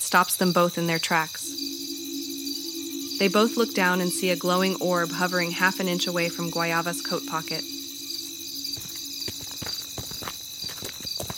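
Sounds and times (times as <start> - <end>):
speech: 0.1 - 1.5, 3.2 - 7.8
thin high-pitched hum: 1.0 - 10.1
footsteps of characters walking: 8.7 - 11.3.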